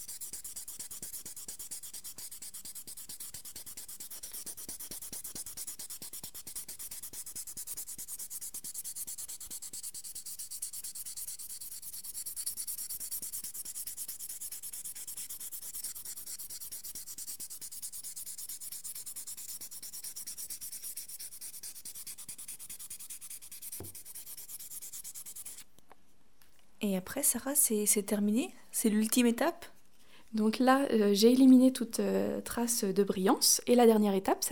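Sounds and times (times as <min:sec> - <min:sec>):
abrasive paper wet-sanding a lacquered surface by hand: 0:00.0 - 0:25.6
speech: 0:26.8 - 0:29.7, 0:30.3 - 0:34.4.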